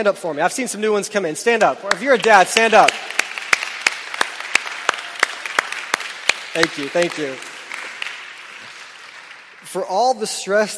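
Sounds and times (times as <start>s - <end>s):
speech: 0.0s - 3.2s, 6.6s - 7.5s, 9.7s - 10.7s
sharp evenly spaced claps: 1.5s - 9.8s
audience applause: 1.9s - 9.9s.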